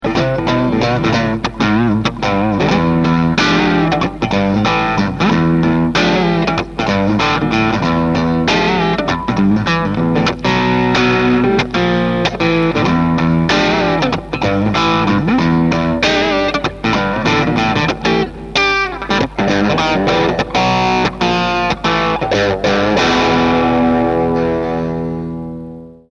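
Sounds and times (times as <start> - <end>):
Ibanez electric guitar in pickup position one: 0.0 - 26.1.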